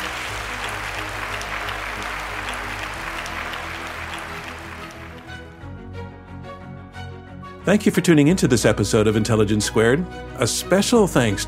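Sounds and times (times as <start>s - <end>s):
crowd applauding: 0.0s - 5.6s
low musical tone: 0.0s - 11.4s
speech: 7.7s - 11.4s.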